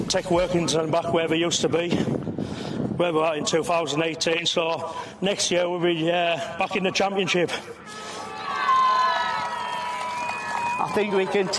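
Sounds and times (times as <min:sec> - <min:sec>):
speech: 0:00.1 - 0:08.0, 0:10.8 - 0:11.5
speedway fans cheering at a National League Riders' Championship meeting: 0:07.8 - 0:11.5.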